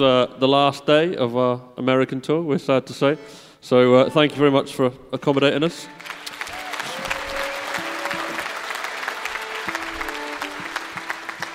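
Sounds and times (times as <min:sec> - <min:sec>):
speech: 0:00.0 - 0:06.2
audience applause: 0:06.0 - 0:11.5.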